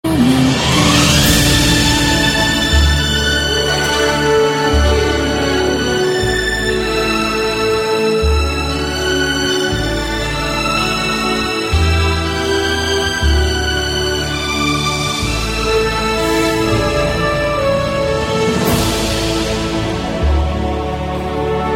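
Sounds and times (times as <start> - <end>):
romantic music: 0.0 - 21.7.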